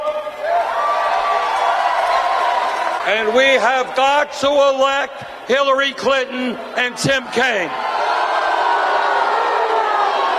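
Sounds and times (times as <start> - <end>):
crowd of supporters booing Bernie Sanders at a rally: 0.0 - 3.6, 7.5 - 10.3
speech: 3.1 - 7.8.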